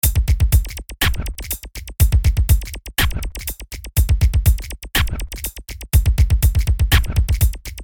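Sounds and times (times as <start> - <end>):
music beat: 0.0 - 7.8.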